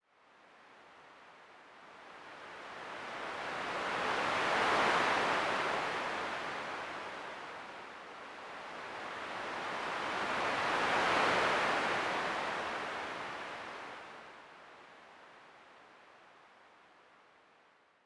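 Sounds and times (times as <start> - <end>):
ocean waves: 0.4 - 17.7.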